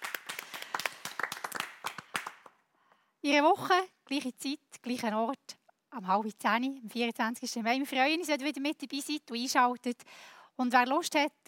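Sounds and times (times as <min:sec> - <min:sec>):
audience applause: 0:00.0 - 0:02.5
speech: 0:03.2 - 0:11.4.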